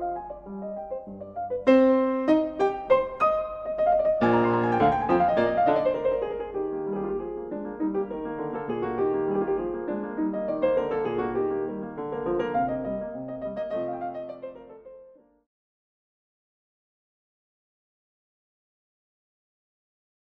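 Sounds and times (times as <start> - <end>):
piano sonata in C minor: 0.0 - 15.5.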